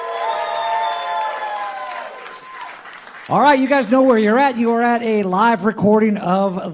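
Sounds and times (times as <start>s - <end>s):
live audience applause: 0.0s - 5.0s
speech: 3.3s - 6.7s.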